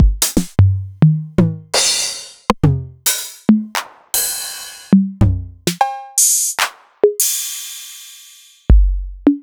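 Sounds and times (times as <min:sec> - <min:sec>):
Novation Drumstation drum machine: 0:00.0 - 0:09.4.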